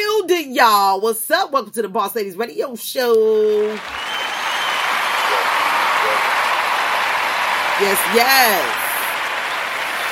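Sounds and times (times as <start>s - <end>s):
speech: 0.6s - 4.2s, 7.8s - 8.8s
round of applause: 3.3s - 10.1s.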